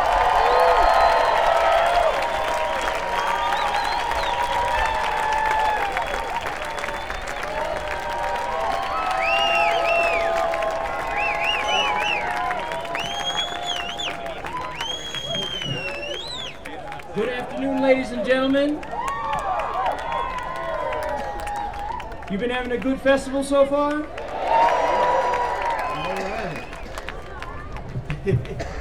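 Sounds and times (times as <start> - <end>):
festival audience whoops and cheers: 0.0 - 17.0, 18.8 - 22.3, 24.2 - 27.8
festival audience applause welcoming a band at Telluride: 0.0 - 28.7
speech: 22.4 - 24.2.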